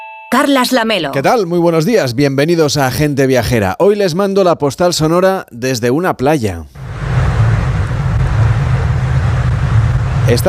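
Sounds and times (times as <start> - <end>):
speech: 0.3 - 6.8, 10.3 - 10.4
cars driving along beach promenade: 6.8 - 10.4.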